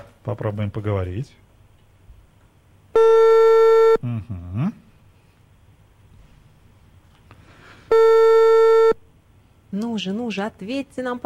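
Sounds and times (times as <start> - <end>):
speech: 0.2 - 1.4, 4.0 - 4.8, 9.7 - 11.2
telephone line tone while calling: 3.0 - 4.0, 7.9 - 9.0.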